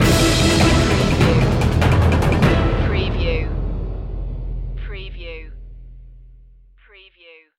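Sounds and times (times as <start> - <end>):
take action musical stinger: 0.0 - 4.8.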